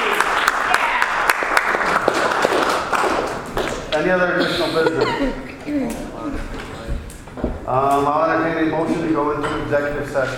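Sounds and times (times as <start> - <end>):
audience clapping: 0.0 - 4.1
speech: 4.0 - 6.7, 7.7 - 10.3
laughter: 4.2 - 6.6.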